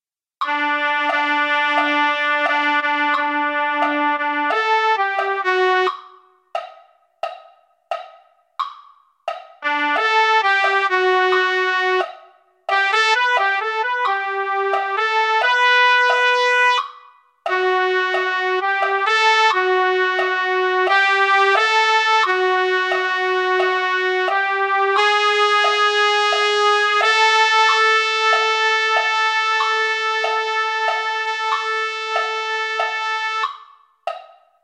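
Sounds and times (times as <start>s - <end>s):
trumpet: 0.4s - 6.2s, 9.6s - 33.7s.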